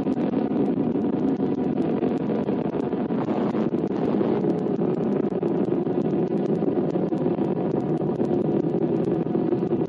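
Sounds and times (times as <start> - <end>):
Titan II rocket engines roaring at launch: 0.0 - 9.8.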